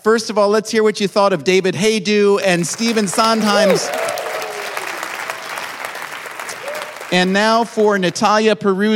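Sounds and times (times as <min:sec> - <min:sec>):
speech: 0:00.0 - 0:04.2, 0:07.1 - 0:08.9
audience clapping: 0:02.4 - 0:08.6
faint cheers and whoops: 0:03.4 - 0:05.7, 0:06.5 - 0:07.1.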